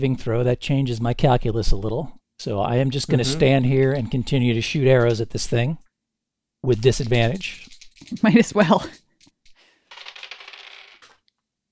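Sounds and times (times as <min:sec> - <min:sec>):
speech: 0:00.0 - 0:05.8, 0:06.6 - 0:09.0
dice being rolled on a table: 0:06.9 - 0:11.4.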